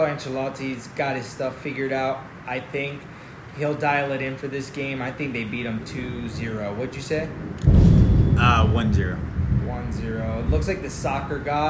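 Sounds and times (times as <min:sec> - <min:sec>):
speech: 0:00.0 - 0:07.8, 0:08.4 - 0:11.6
thunder: 0:07.3 - 0:11.4.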